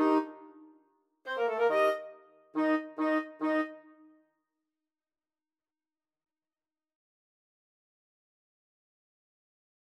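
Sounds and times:
flexible mixed ensemble of four players playing an overture: 0:01.3 - 0:03.8.

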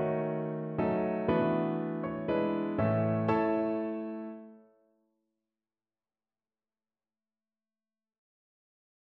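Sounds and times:
Irish-inspired piano piece: 0:00.0 - 0:04.6.

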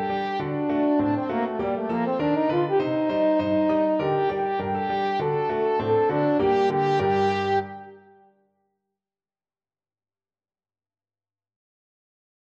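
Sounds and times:
French horn melody: 0:00.0 - 0:08.3.

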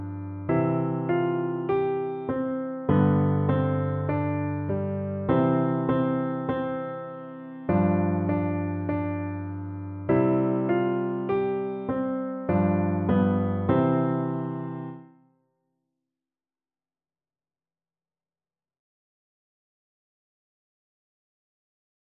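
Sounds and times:
piano duet: 0:00.0 - 0:15.2.

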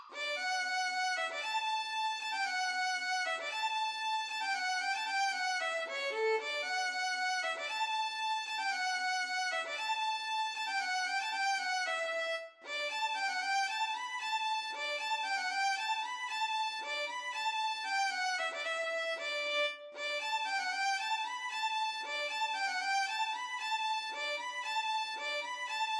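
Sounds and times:
violin duet: 0:00.1 - 0:25.9.

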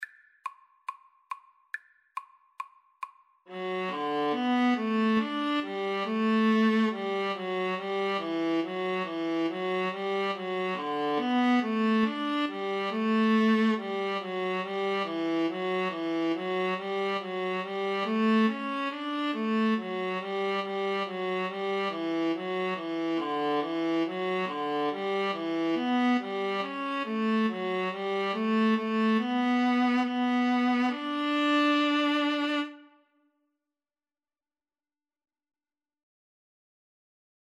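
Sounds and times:
viola duet: 0:03.5 - 0:33.0.

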